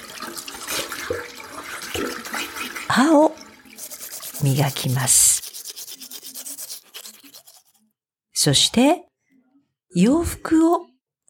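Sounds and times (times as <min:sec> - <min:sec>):
running water splashing while someone washes their face: 0:00.0 - 0:07.7
speech: 0:03.0 - 0:03.4, 0:04.4 - 0:05.4, 0:08.4 - 0:09.1, 0:10.0 - 0:10.9.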